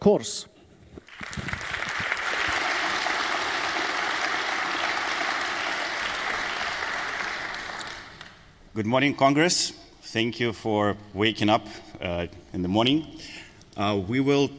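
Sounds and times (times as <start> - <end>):
speech: 0.0 - 0.6, 8.8 - 14.5
audience applause: 1.0 - 8.5.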